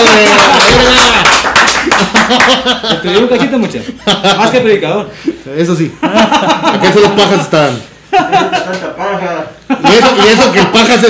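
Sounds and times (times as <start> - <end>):
people clapping: 0.0 - 3.0
laughter: 0.1 - 9.0, 9.6 - 11.0
speech: 2.4 - 11.0.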